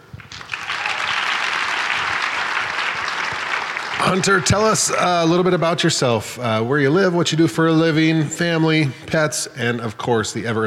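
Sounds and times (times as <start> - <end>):
audience applause: 0.1 - 5.4
speech: 4.1 - 10.6.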